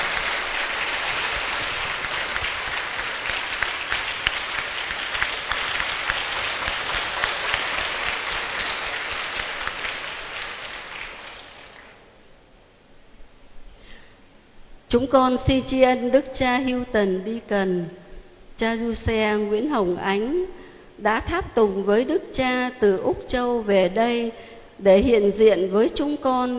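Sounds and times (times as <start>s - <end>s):
audience applauding: 0.0s - 12.1s
speech: 14.9s - 18.0s, 18.6s - 26.5s.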